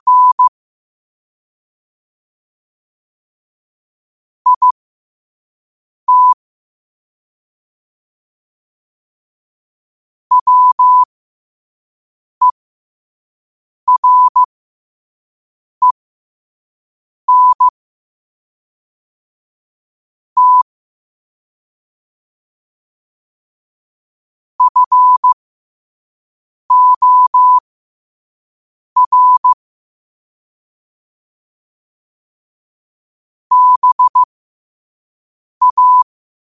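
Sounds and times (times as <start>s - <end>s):
morse code at 5 wpm: 0.0s - 0.5s, 4.5s - 4.8s, 6.1s - 6.4s, 10.3s - 11.1s, 13.9s - 14.5s, 17.3s - 17.7s, 20.4s - 20.6s, 24.6s - 25.4s, 26.7s - 27.6s, 29.0s - 29.6s, 33.5s - 34.3s, 35.6s - 36.1s.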